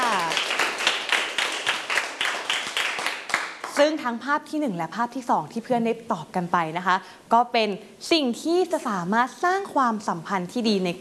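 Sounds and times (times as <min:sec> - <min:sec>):
students clapping for a classmate: 0:00.0 - 0:03.9
speech: 0:03.8 - 0:10.9.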